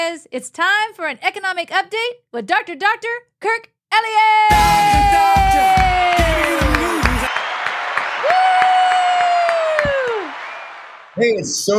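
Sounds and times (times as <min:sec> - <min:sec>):
speech: 0:00.1 - 0:06.5, 0:11.2 - 0:11.7
studio audience applauding and cheering: 0:04.5 - 0:11.6.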